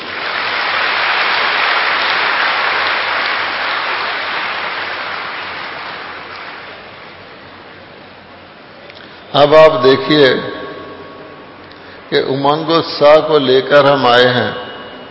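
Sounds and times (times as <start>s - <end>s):
audience clapping: 0.0s - 7.2s
speech: 9.4s - 10.5s, 12.1s - 14.6s.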